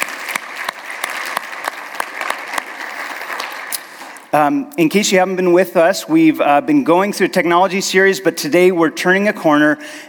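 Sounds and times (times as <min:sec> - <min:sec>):
audience applause: 0:00.0 - 0:04.3
speech: 0:04.4 - 0:10.0.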